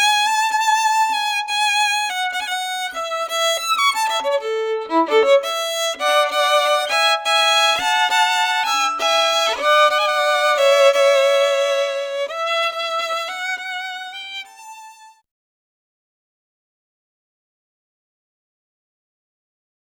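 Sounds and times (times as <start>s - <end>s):
violin: 0.0s - 15.2s.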